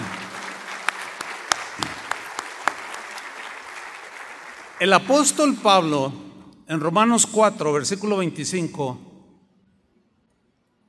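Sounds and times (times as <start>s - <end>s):
audience applause: 0.0s - 5.7s
speech: 4.8s - 9.1s.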